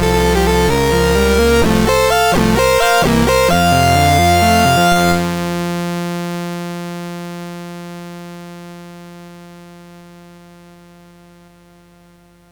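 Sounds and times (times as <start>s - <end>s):
applause synthesized on a MOS6581R3 chip: 0.0s - 5.8s.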